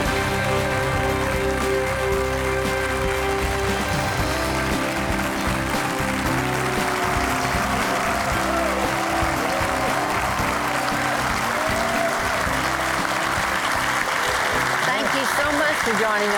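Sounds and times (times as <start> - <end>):
studio audience clapping: 0.0 - 16.3.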